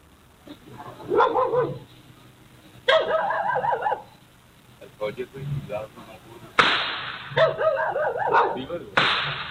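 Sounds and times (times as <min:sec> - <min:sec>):
people talking and calling out: 0:00.0 - 0:09.4
gunshots: 0:06.6 - 0:07.6, 0:09.0 - 0:09.4.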